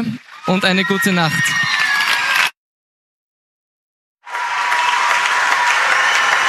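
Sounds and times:
speech: 0:00.0 - 0:01.7
audience applause after a theatre play: 0:00.0 - 0:02.6, 0:04.2 - 0:06.4.

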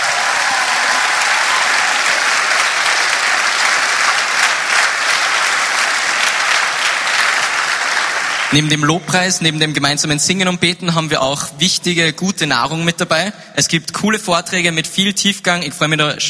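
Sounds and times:
audience applause: 0:00.0 - 0:08.9
speech: 0:08.5 - 0:16.2.

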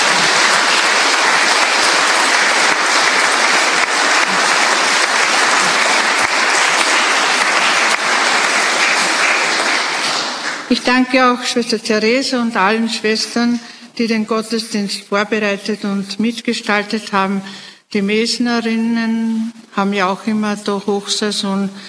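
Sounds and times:
audience applause at a church service: 0:00.0 - 0:10.7
speech: 0:10.8 - 0:21.8.

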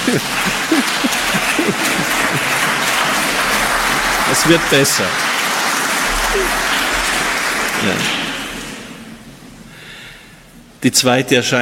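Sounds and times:
light laughter: 0:00.0 - 0:03.5, 0:06.1 - 0:06.8
murmuring voices: 0:00.0 - 0:05.2, 0:06.1 - 0:08.2
audience applause: 0:00.0 - 0:08.9
speech: 0:00.1 - 0:01.1, 0:04.3 - 0:05.3, 0:07.8 - 0:08.2, 0:10.8 - 0:11.5.

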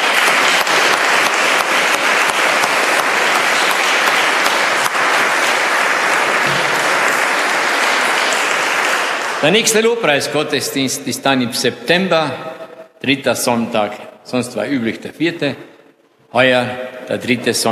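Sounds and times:
audience applause: 0:00.0 - 0:09.9
speech: 0:09.4 - 0:15.7, 0:16.3 - 0:17.7.

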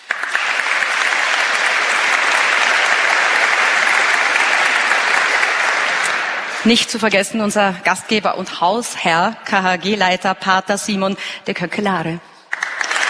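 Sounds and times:
audience applause: 0:00.0 - 0:06.7, 0:12.5 - 0:13.0
speech: 0:06.6 - 0:12.3.

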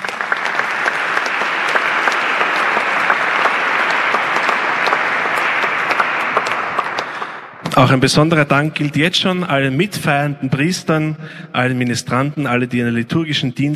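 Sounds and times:
audience applause in church: 0:00.0 - 0:08.0
speech: 0:07.8 - 0:13.7.

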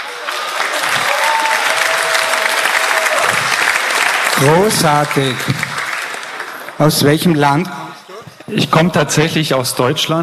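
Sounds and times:
audience applause: 0:00.0 - 0:08.0
speech: 0:04.4 - 0:05.7, 0:06.8 - 0:07.8, 0:08.5 - 0:10.2.

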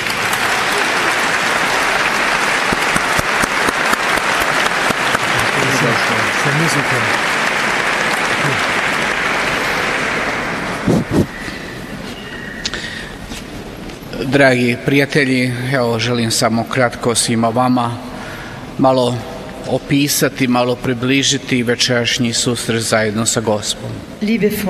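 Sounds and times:
large audience applause: 0:00.0 - 0:12.0
speech: 0:06.7 - 0:07.2, 0:14.3 - 0:18.1, 0:18.8 - 0:24.6.

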